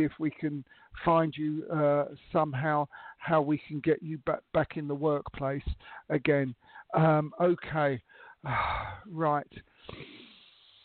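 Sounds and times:
speech: 0.0s - 10.2s
person taking a deep breath: 2.9s - 3.2s, 5.8s - 6.9s, 8.0s - 10.8s.

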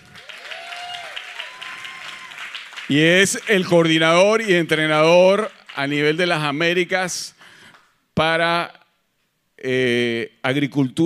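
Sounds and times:
faint whistles and cheers: 0.0s - 2.6s
crowd applauding: 0.0s - 6.4s
speech: 2.9s - 7.4s, 8.2s - 8.8s, 9.6s - 11.0s.

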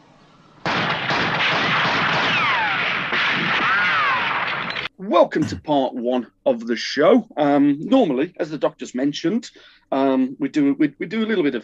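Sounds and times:
rapid rifle gunfire from a Doctor Who scene: 0.6s - 4.9s
speech: 5.1s - 11.6s.

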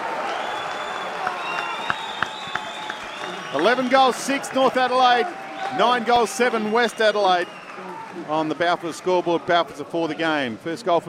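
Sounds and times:
stadium crowd roaring and applauding a goal: 0.0s - 10.3s
whistles: 0.3s - 4.1s, 6.5s - 7.9s
speech: 3.5s - 11.0s.

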